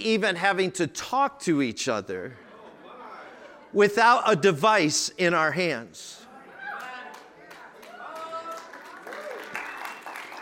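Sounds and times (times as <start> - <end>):
speech: 0.0 - 2.4, 3.7 - 6.2
laughter: 2.2 - 4.2
audience clapping: 6.7 - 10.4.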